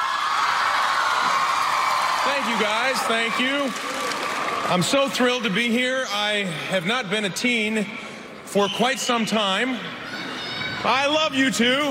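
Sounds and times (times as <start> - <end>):
large crowd cheering and applauding: 0.0 - 4.8
speech: 2.2 - 4.0, 4.7 - 10.0, 10.8 - 11.9.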